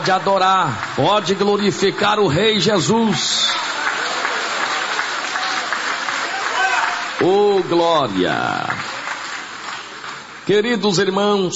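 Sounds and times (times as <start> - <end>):
speech: 0.0 - 3.6, 7.2 - 8.9, 10.5 - 11.5
audience applause: 0.0 - 10.6.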